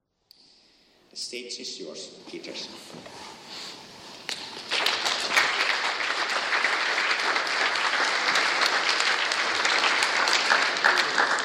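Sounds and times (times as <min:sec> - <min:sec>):
speech: 0:01.2 - 0:03.3
audience applause: 0:04.3 - 0:11.4.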